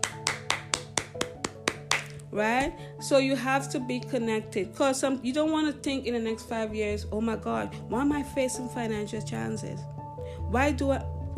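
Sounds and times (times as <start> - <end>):
hand clapping: 0.0 - 2.2
speech: 2.4 - 9.9, 10.5 - 11.3.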